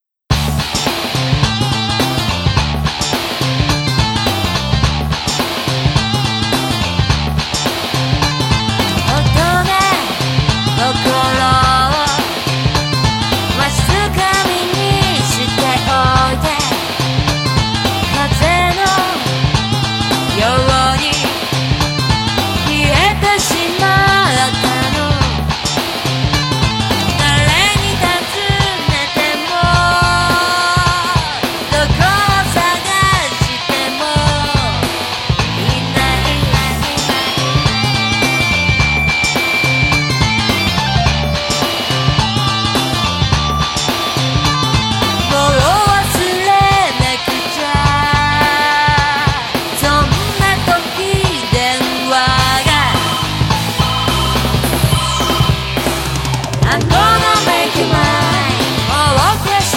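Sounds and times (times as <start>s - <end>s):
karaoke box background music: 0.6s - 59.7s.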